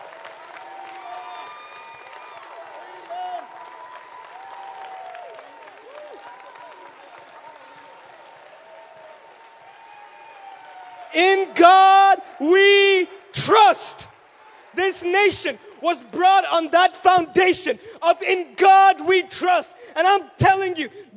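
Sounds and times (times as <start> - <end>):
audience clapping: 0.0 - 16.2
crowd shouting and cheering: 0.0 - 21.1
speech: 11.1 - 13.8, 14.9 - 21.0.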